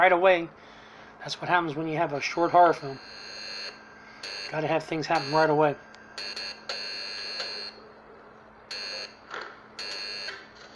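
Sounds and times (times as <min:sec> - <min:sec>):
speech: 0:00.0 - 0:00.6, 0:01.2 - 0:03.2, 0:04.5 - 0:06.4
Morse code beeping: 0:02.3 - 0:07.8.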